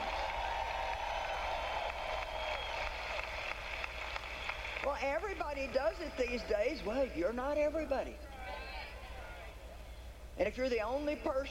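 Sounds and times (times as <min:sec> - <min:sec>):
audience clapping: 0:00.0 - 0:06.2
speech: 0:04.9 - 0:08.3, 0:10.4 - 0:11.5.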